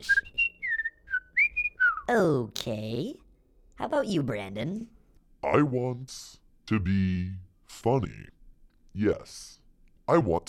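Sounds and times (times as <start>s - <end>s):
finch-like chirping whistles: 0.0s - 2.1s
speech: 2.1s - 3.2s, 3.8s - 8.4s, 9.0s - 10.4s.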